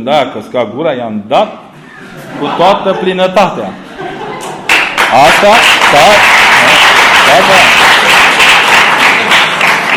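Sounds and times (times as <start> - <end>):
speech: 0.0 - 1.6, 2.4 - 3.8, 5.1 - 6.4, 7.3 - 7.8
laughter: 1.8 - 5.3
audience applause: 4.7 - 9.9.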